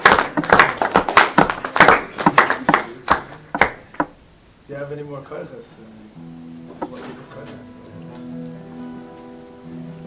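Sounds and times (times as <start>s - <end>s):
clapping: 0.0s - 4.1s
speech: 4.9s - 7.8s.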